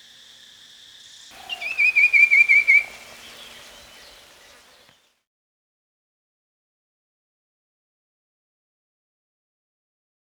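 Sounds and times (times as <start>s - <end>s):
common iora rising whistles: 1.4s - 5.0s.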